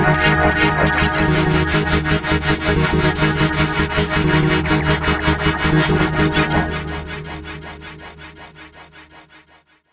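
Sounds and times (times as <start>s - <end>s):
synthesizer atmospheres: 0.2s - 8.0s.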